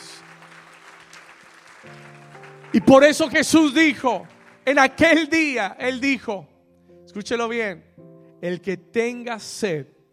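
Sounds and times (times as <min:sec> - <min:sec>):
audience applause: 0:00.0 - 0:05.1
sustained organ or keyboard chords: 0:00.0 - 0:09.5
speech: 0:01.8 - 0:06.5, 0:07.1 - 0:10.1.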